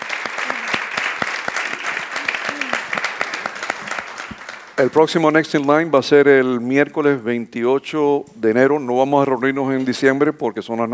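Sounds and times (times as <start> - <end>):
audience applause: 0.0 - 5.0
speech: 4.8 - 10.9.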